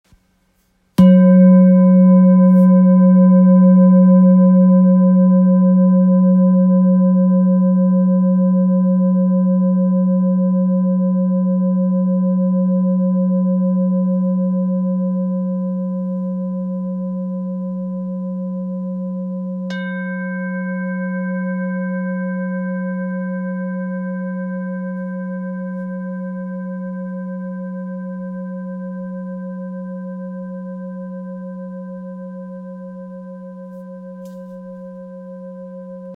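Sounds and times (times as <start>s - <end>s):
thick bowl tone in F sharp: 1.0s - 36.1s.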